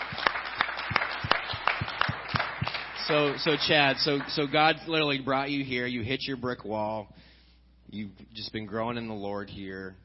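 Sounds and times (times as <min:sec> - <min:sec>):
audience clapping: 0:00.0 - 0:05.3
speech: 0:03.1 - 0:07.2, 0:07.9 - 0:10.0.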